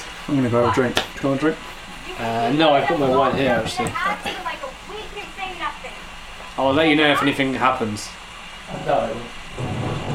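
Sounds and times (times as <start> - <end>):
speech: 0.3 - 4.7, 6.6 - 9.7
thunder: 9.4 - 10.1.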